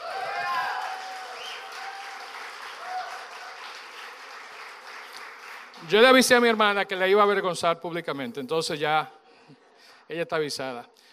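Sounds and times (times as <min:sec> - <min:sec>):
audience applause: 0:00.0 - 0:06.5
speech: 0:05.8 - 0:11.0.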